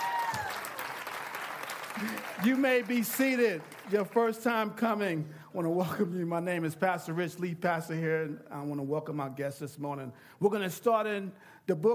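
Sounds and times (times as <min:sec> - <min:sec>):
audience clapping hands: 0:00.0 - 0:04.5
speech: 0:02.0 - 0:11.9.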